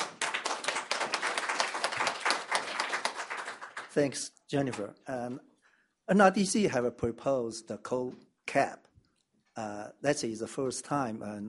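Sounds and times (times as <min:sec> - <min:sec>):
audience applauding: 0:00.0 - 0:04.2
speech: 0:04.0 - 0:05.5, 0:06.1 - 0:08.9, 0:09.6 - 0:11.4.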